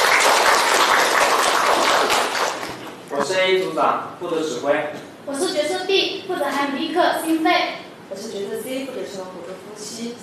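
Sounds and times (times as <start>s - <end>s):
audience applause: 0.0s - 2.9s
speech: 3.4s - 10.2s.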